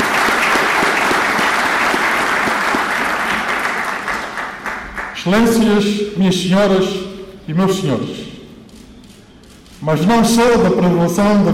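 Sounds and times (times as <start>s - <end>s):
assembly applause: 0.0s - 5.2s
speech: 5.2s - 8.4s, 9.8s - 11.5s.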